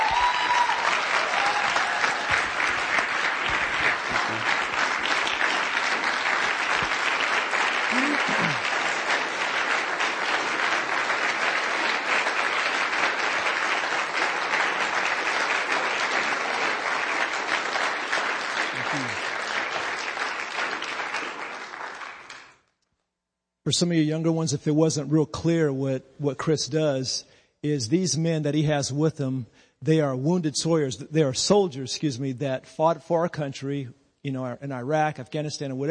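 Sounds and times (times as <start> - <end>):
large crowd round of applause: 0.0 - 22.6
speech: 23.7 - 35.8.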